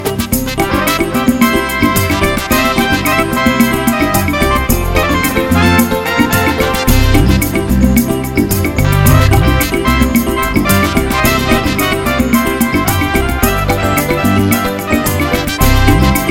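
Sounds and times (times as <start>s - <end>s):
samba music: 0.0s - 16.2s.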